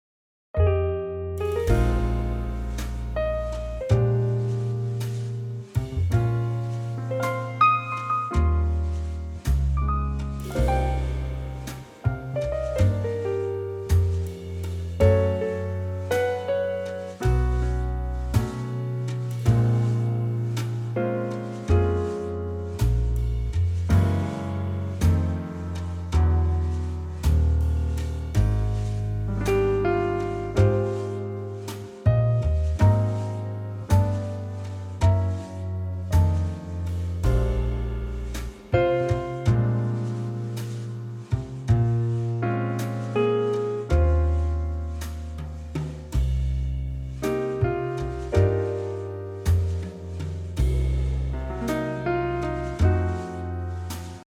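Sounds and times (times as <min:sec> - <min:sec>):
jazz music: 0:00.6 - 0:54.2.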